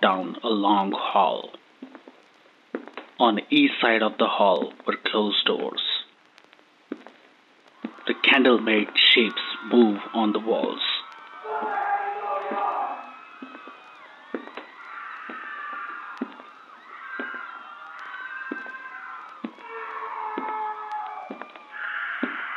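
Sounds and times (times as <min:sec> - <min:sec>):
speech: 0:00.1 - 0:01.6, 0:03.2 - 0:05.9, 0:08.1 - 0:10.9
people screaming behind closed doors: 0:07.7 - 0:22.5.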